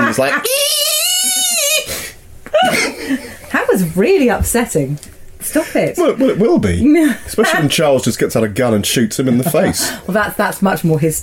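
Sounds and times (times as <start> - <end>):
laughter: 0.0 - 0.7, 2.6 - 3.6, 6.1 - 8.0, 9.2 - 10.0
speech: 0.2 - 0.8, 2.6 - 11.2
person imitating a howling gerbil-like animal cry: 0.4 - 1.9.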